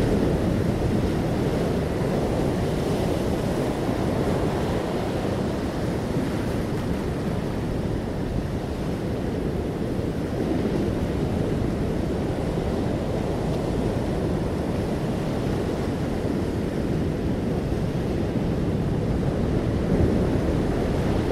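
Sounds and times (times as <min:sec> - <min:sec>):
ocean waves: 0:00.0 - 0:21.2.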